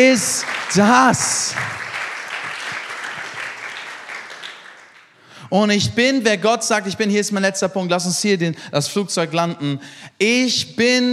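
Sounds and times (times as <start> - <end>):
speech: 0.0 - 1.8, 5.5 - 11.1
audience applause: 0.0 - 5.1.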